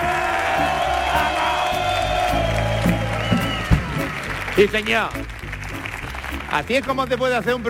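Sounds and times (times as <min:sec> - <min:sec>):
crowd shouting: 0:00.0 - 0:04.2
live audience cheering and clapping at Auditorio Cartuja: 0:00.0 - 0:07.6
speech: 0:04.6 - 0:05.3, 0:06.5 - 0:07.6.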